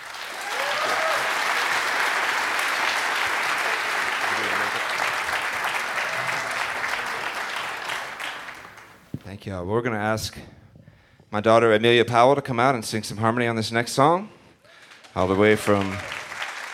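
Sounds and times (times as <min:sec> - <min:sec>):
audience applause welcoming musicians back on stage: 0:00.0 - 0:09.1, 0:14.8 - 0:16.7
speech: 0:09.4 - 0:10.6, 0:11.3 - 0:14.4, 0:15.2 - 0:16.2.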